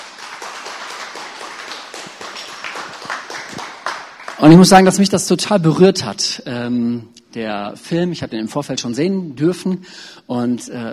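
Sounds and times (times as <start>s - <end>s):
audience applause: 0.0s - 4.9s
speech: 4.4s - 10.9s.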